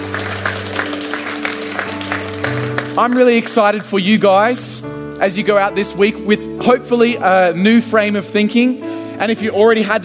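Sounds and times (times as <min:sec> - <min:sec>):
audience applause: 0:00.0 - 0:03.9
speech: 0:03.0 - 0:10.0.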